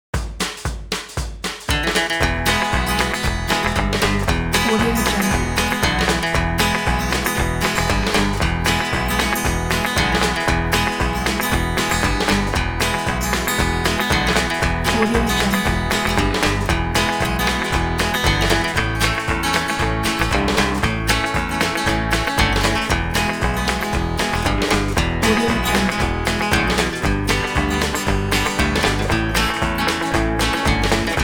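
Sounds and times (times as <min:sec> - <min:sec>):
country music: 0:01.7 - 0:31.2.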